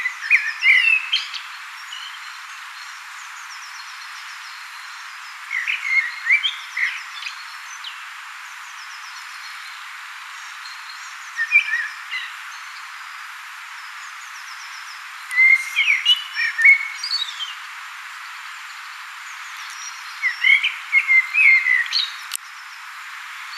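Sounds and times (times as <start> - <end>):
common blackbird singing: 0.0 - 8.0, 10.4 - 12.9, 13.8 - 17.6, 18.6 - 22.8.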